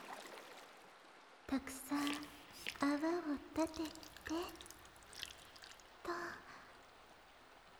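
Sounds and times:
speech: 0:01.5 - 0:04.6
hot water being poured: 0:01.5 - 0:06.6.

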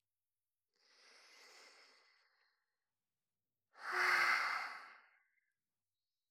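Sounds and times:
close-up breathing: 0:00.8 - 0:02.7, 0:03.8 - 0:05.3.

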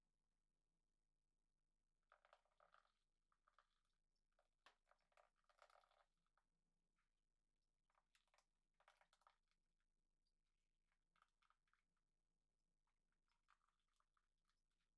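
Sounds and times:
coffee brewing: 0:02.1 - 0:06.5, 0:07.9 - 0:09.7, 0:10.9 - 0:12.2, 0:12.9 - 0:14.9.

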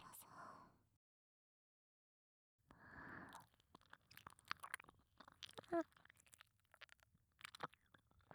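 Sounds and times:
ASMR ear licking sounds: 0:03.3 - 0:08.3.

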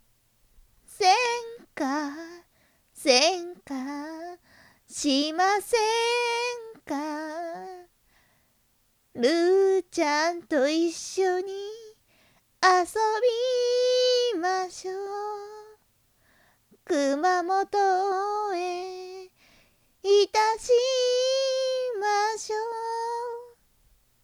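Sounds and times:
ballad-style singing: 0:00.9 - 0:07.9, 0:09.2 - 0:12.0, 0:12.6 - 0:15.8, 0:16.8 - 0:19.4, 0:20.0 - 0:23.6.

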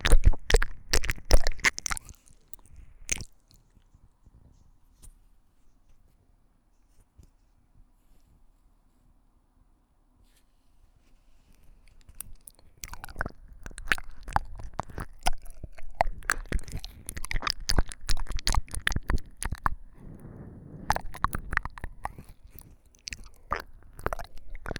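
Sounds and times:
wet splashy ear licking ASMR: 0:00.0 - 0:03.9, 0:11.5 - 0:24.7.

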